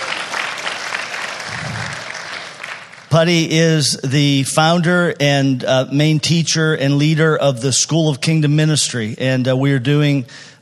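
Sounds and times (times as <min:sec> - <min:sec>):
audience applause: 0:00.0 - 0:03.1
speech: 0:03.1 - 0:10.5.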